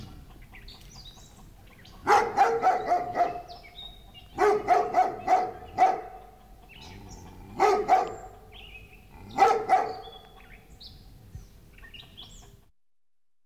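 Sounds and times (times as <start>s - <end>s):
birds chirping: 0.0s - 12.7s
dog giving throaty barks: 2.0s - 8.5s, 9.2s - 10.3s.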